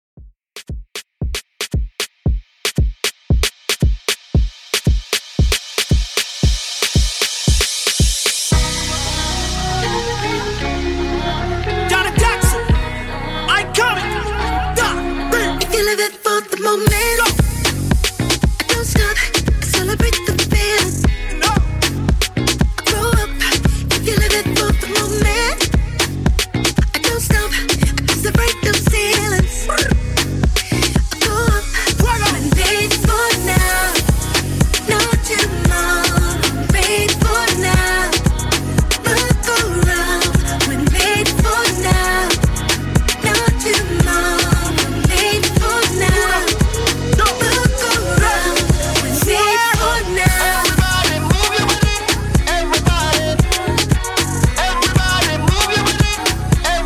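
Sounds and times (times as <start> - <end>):
afrobeat music: 0.6 - 56.8.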